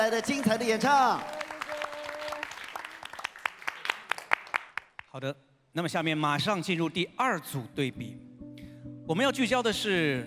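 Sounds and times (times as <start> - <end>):
speech: 0.0 - 1.4, 5.2 - 8.3, 9.1 - 10.2
audience applause: 0.0 - 4.9.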